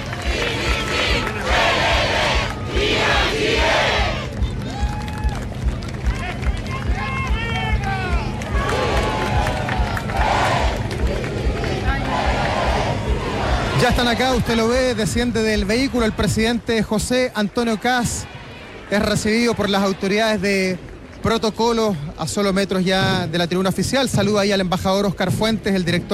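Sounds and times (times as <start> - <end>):
hubbub of voices: 0.0 - 4.8, 5.7 - 26.1
crowd shouts: 0.0 - 5.4, 6.0 - 20.7
large outdoor crowd applauding and cheering at ceremony: 0.0 - 23.7
speech: 14.0 - 26.1.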